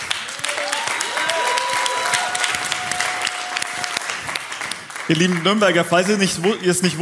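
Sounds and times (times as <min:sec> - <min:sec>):
audience clapping in greeting: 0:00.0 - 0:06.9
speech: 0:05.1 - 0:06.9.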